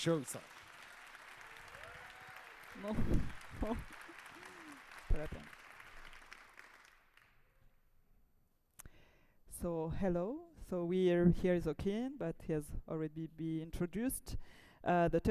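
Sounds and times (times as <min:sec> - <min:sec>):
speech: 0:00.0 - 0:00.6, 0:02.8 - 0:04.0, 0:05.1 - 0:05.6, 0:09.6 - 0:15.3
audience applause: 0:00.0 - 0:07.4.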